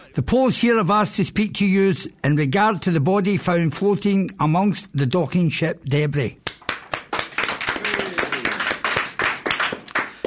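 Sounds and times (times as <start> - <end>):
speech: 0.2 - 6.5
crowd applause: 6.6 - 10.2.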